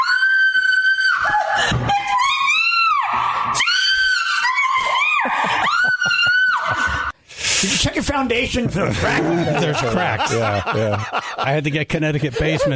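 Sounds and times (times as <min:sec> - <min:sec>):
woman screaming at a cricket: 0:00.0 - 0:07.1
laughter: 0:05.2 - 0:07.1, 0:08.8 - 0:12.7
speech: 0:08.2 - 0:12.7.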